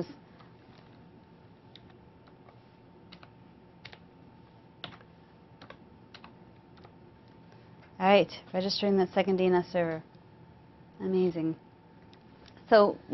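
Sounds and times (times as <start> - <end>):
speech: 0.0 - 0.2, 8.0 - 10.1, 11.0 - 11.6, 12.7 - 13.1
low steady hum: 0.0 - 13.1
typing on a computer keyboard: 3.1 - 4.0, 4.8 - 7.0.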